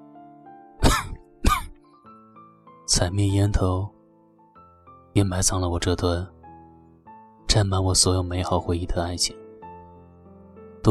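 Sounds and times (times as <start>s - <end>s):
person coughing: 0.8s - 1.8s
speech: 2.9s - 4.0s, 5.2s - 6.4s, 7.5s - 9.4s.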